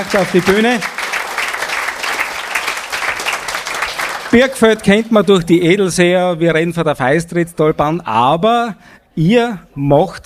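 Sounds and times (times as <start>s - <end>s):
speech: 0.0s - 0.9s, 4.3s - 10.2s
audience clapping steadily: 0.0s - 4.6s.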